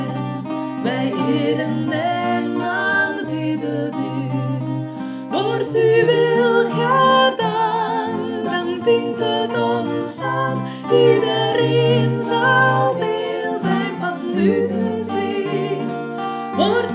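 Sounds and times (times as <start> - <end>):
tutti soprano guitar: 0.0 - 16.9.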